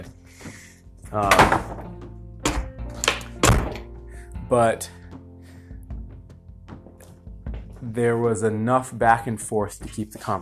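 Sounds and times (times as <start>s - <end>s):
speech: 1.1s - 1.8s, 4.5s - 5.0s, 7.8s - 10.3s
door closing: 1.2s - 3.9s.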